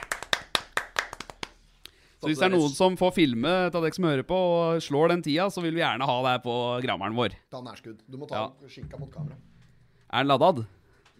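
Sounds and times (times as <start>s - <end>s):
clapping applause: 0.0s - 1.6s
speech: 2.2s - 9.5s, 10.1s - 11.1s.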